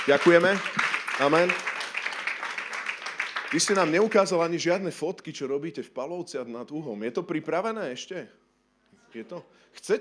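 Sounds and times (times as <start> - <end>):
speech: 0.0 - 1.7, 3.5 - 8.4, 9.1 - 9.9
group applause of thanks: 0.0 - 4.6.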